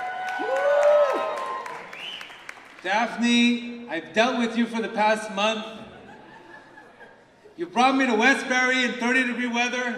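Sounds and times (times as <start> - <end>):
live audience applauding and cheering: 0.0 - 2.9
speech: 2.8 - 5.8, 7.6 - 9.9
laughter: 5.8 - 7.6.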